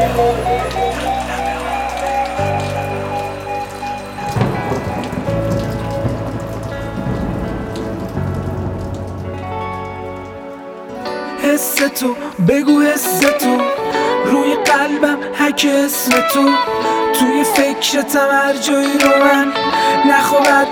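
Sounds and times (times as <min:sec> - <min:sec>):
gentle drizzle of rain pattering on a surface: 0:00.0 - 0:20.6
music: 0:00.0 - 0:20.6
speech: 0:00.1 - 0:01.2, 0:11.6 - 0:20.6.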